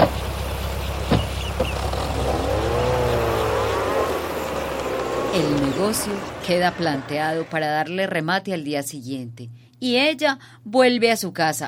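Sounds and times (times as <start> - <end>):
test-driven car engine revving: 0.4 - 7.9
speech: 5.4 - 11.6.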